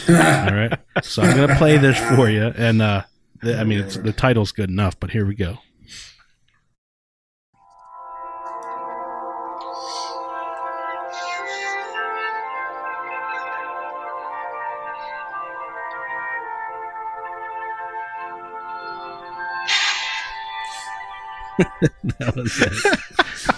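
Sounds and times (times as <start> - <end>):
speech: 0.0 - 6.1, 21.6 - 23.5
laughter: 0.1 - 1.6, 21.4 - 23.5
sustained brass and orchestral tones: 7.9 - 21.7.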